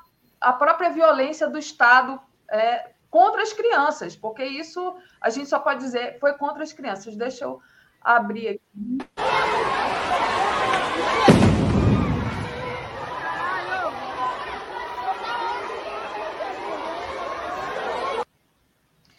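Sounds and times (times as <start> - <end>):
speech: 0.4 - 9.4
crowd chatter: 9.2 - 18.3
bomb thrown by armored police vehicle into a school courtyard in the Maré favela: 11.1 - 13.1.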